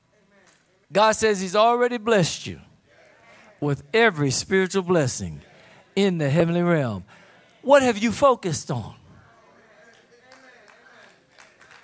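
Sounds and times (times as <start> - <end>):
speech: 0.9 - 2.7, 3.6 - 9.0
sparse audience hand clapping: 10.3 - 11.8.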